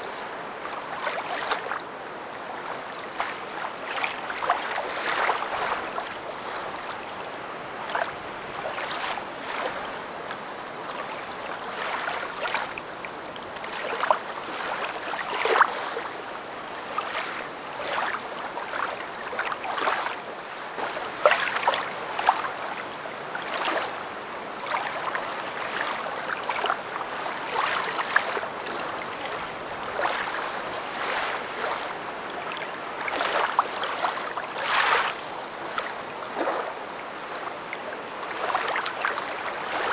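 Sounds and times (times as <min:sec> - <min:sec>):
ocean water lapping at lighthouses: 0:00.0 - 0:39.9.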